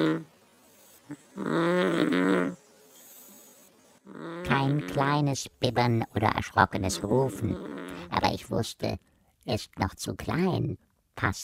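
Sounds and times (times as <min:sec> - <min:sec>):
speech: 0:00.0 - 0:00.3, 0:01.1 - 0:02.6, 0:04.1 - 0:11.4
child snoring softly: 0:00.0 - 0:05.0, 0:06.9 - 0:08.2.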